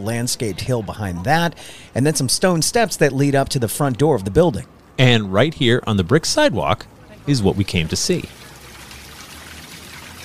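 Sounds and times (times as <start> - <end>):
speech: 0.0 - 8.4
stone fountain water stream splashing into bowl: 7.2 - 10.2.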